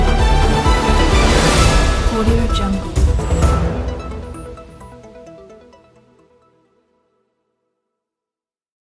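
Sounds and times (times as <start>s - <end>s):
news music: 0.0s - 6.6s.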